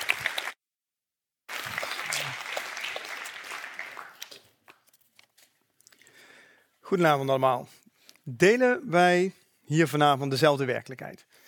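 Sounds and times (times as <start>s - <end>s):
audience applause: 0.0s - 0.6s, 1.5s - 4.5s
speech: 6.9s - 11.3s.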